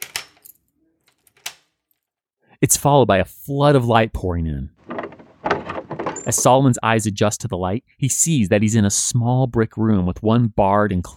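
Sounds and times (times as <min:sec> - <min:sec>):
speech: 0:02.6 - 0:04.8, 0:06.3 - 0:11.1
key rattling in a door lock: 0:04.8 - 0:06.5.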